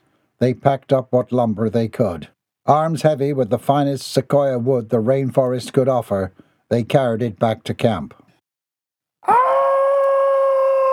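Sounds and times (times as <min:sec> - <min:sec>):
speech: 0:00.4 - 0:08.2
horrific scream from below: 0:09.2 - 0:10.9.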